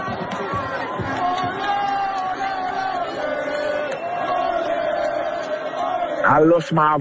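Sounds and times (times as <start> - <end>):
Haiti football fans cheering and chanting: 0.0 - 6.9
speech: 6.3 - 6.9.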